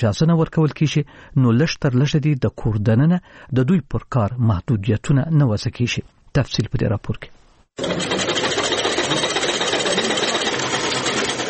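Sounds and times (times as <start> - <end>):
speech: 0.0 - 8.4
several sewing machines running in a tailoring workshop: 7.8 - 11.4.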